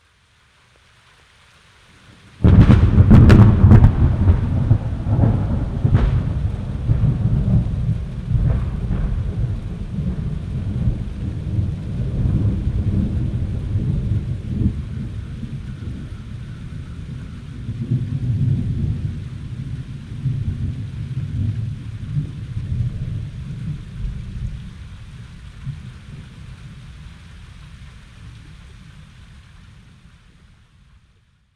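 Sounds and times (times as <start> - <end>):
thunderclap: 2.4 - 24.8.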